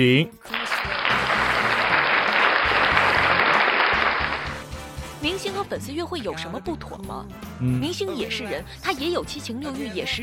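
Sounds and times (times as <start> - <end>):
speech: 0.0 - 0.6, 5.2 - 10.2
audience applause: 0.5 - 4.7.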